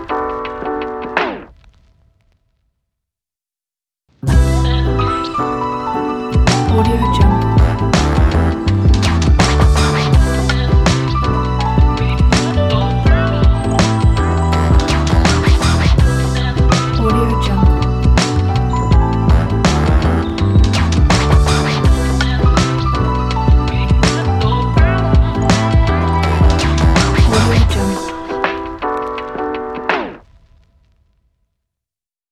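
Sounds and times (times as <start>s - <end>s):
chill hip hop music: 4.3s - 30.1s.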